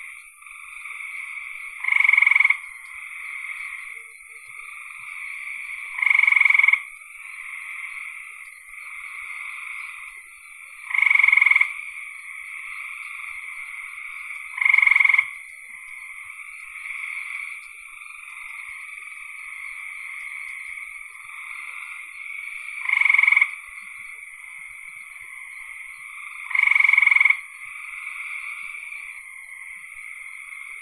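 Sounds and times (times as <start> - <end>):
frog pulsed trills: 0.0 - 30.7.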